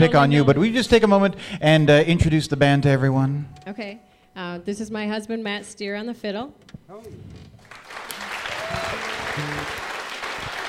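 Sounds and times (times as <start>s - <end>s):
speech: 0.0s - 7.5s, 9.4s - 9.8s
crowd clapping: 7.6s - 10.6s.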